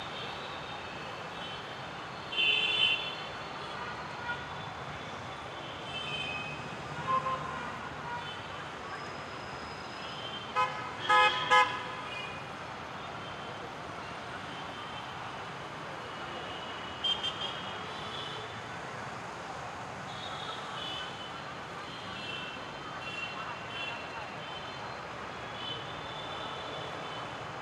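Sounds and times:
traffic ambience in a red corridor: 0.0s - 27.5s.

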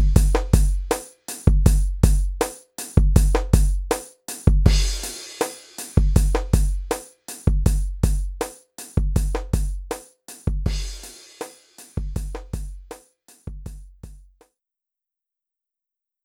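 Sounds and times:
handheld video game drum beat: 0.0s - 14.4s.

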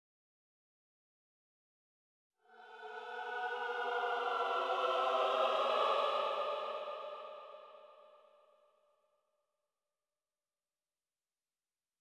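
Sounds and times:
choir singing: 2.4s - 8.5s.

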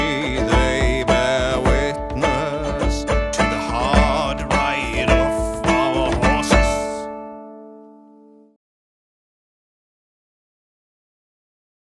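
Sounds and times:
drum: 0.0s - 7.1s
person singing: 0.0s - 7.2s
guitar: 0.0s - 8.6s.

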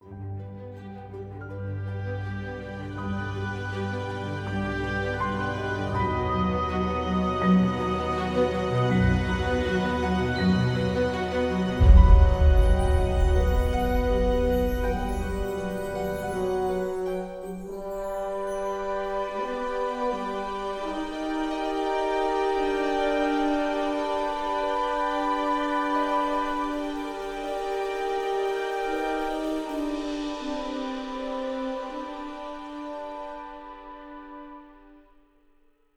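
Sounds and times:
forest music: 0.0s - 35.7s.

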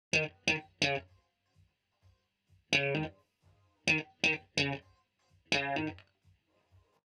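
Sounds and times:
guitar: 0.1s - 1.1s, 2.7s - 3.2s, 3.8s - 4.9s, 5.5s - 6.1s.

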